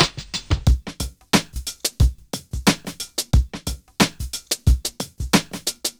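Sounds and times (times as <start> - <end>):
music loop: 0.0 - 5.9.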